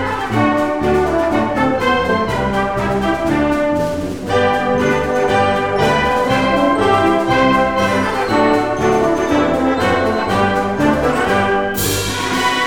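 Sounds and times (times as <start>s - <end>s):
brass instruments: 0.0s - 12.6s.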